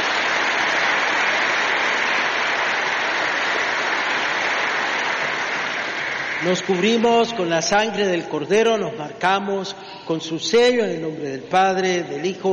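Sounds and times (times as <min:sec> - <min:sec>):
audience applause: 0:00.0 - 0:07.2
speech: 0:06.4 - 0:12.5.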